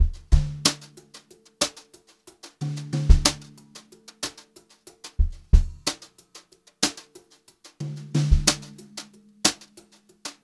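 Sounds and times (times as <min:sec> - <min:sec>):
brushed drum loops: 0:00.0 - 0:01.0, 0:02.6 - 0:03.6, 0:05.2 - 0:06.0, 0:07.8 - 0:09.9.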